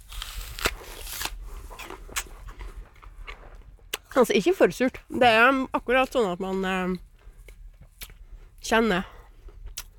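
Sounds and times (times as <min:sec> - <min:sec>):
person biting into a sour apple picked in a garden: 0:00.0 - 0:04.2, 0:09.6 - 0:09.9
chewing apple: 0:00.1 - 0:04.2, 0:06.5 - 0:09.9
speech: 0:04.2 - 0:07.1, 0:08.7 - 0:09.1.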